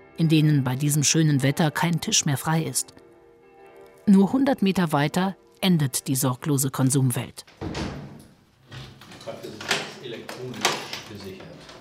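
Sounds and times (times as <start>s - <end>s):
speech: 0.2s - 3.0s, 4.0s - 7.8s
door of a red brick house being unlocked and opened: 7.5s - 11.8s.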